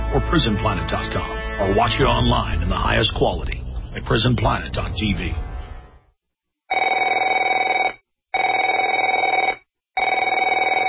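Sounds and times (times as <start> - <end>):
speech: 0.1 - 5.5
electronic telephone ringing: 6.7 - 10.8.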